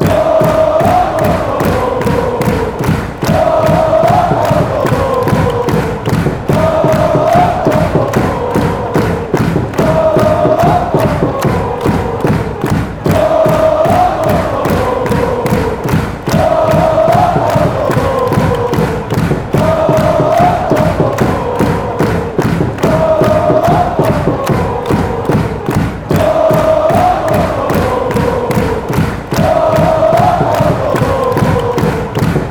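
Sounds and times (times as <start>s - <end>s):
football fans chanting: 0.0s - 32.4s.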